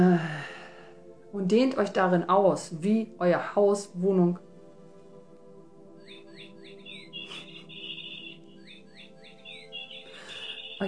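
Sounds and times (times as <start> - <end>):
speech: 0.0 - 0.4, 1.3 - 4.5
bird chirping: 5.9 - 10.8.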